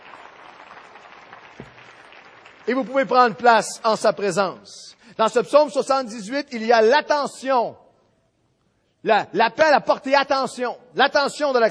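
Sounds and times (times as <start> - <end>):
congregation clapping during a church worship service: 0.0 - 5.3
speech: 2.7 - 7.8, 9.0 - 11.6.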